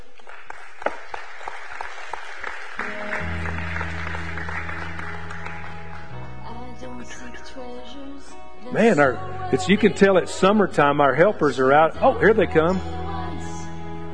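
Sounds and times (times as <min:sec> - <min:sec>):
big round of applause: 0:00.0 - 0:06.3
speech: 0:08.7 - 0:13.0.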